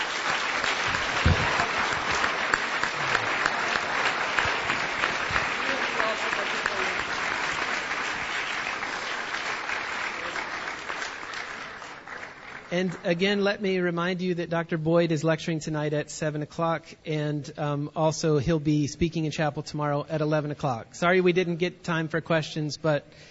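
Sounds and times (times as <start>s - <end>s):
audience applause: 0.0s - 12.7s
speech: 12.8s - 23.2s.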